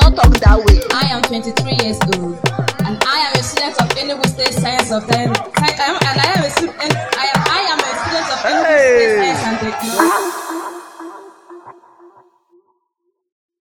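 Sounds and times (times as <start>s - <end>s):
beat: 0.0s - 7.6s, 9.8s - 12.0s
laughter: 5.4s - 9.8s.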